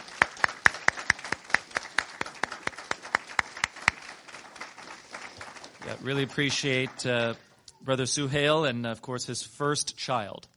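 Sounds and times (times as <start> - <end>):
small audience applause: 0.0 - 7.4
speech: 5.9 - 10.5.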